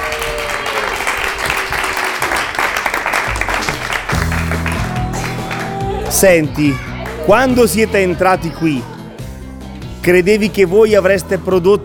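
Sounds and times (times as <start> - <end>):
group applause: 0.0 - 7.8
speech: 6.2 - 8.9, 10.0 - 11.8.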